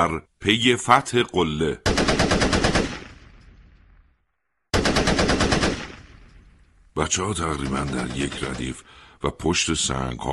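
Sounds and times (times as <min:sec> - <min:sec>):
speech: 0:00.0 - 0:01.9, 0:07.0 - 0:10.3
rapid gunfire: 0:01.8 - 0:03.5, 0:04.7 - 0:06.4, 0:07.4 - 0:08.9.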